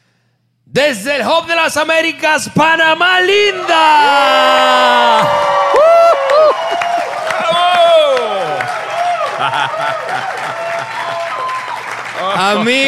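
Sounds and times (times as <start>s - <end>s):
speech: 0.7s - 5.6s, 12.3s - 12.8s
live crowd cheering and applauding: 3.6s - 12.8s
people laughing: 6.7s - 11.4s.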